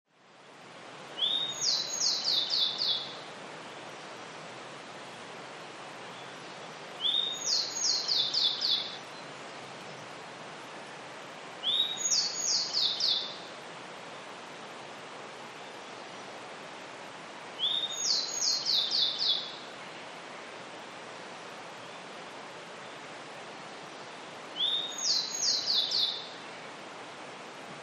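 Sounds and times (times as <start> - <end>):
grey bunting song of whistled and buzzy notes: 1.2 - 3.2, 6.1 - 9.2, 11.6 - 13.5, 17.6 - 19.6, 24.6 - 26.4.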